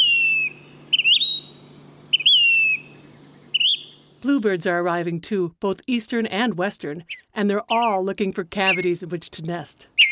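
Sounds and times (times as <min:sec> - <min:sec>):
phoebe whistled calls: 0:00.0 - 0:04.2, 0:08.6 - 0:09.0, 0:10.0 - 0:10.1
speech: 0:04.2 - 0:10.1.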